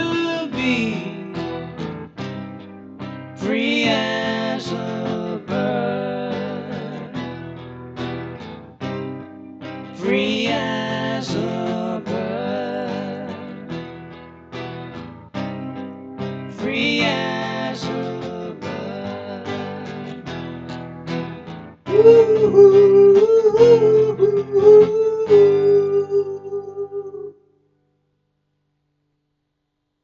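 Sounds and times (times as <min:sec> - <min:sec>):
vocals: 0:00.0 - 0:02.2, 0:03.4 - 0:07.8, 0:09.7 - 0:14.0, 0:16.4 - 0:20.6, 0:21.8 - 0:27.3.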